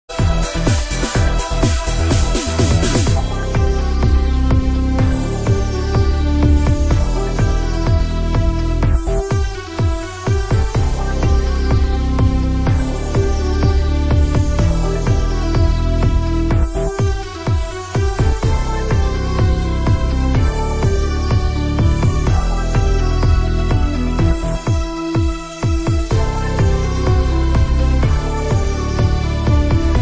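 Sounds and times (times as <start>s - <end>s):
rock tune: 0.1s - 29.9s.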